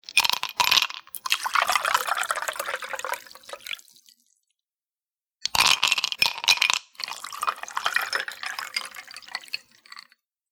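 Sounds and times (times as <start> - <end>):
drink pouring over ice: 0.5 - 4.2, 5.6 - 10.1.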